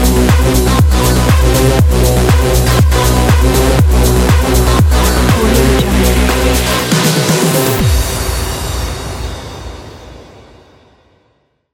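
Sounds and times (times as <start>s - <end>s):
aggressive techno music: 0.0s - 8.6s.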